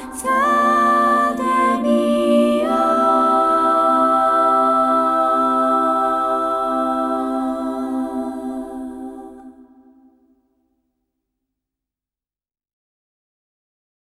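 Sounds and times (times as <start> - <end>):
a cappella singing: 0.0 - 10.3.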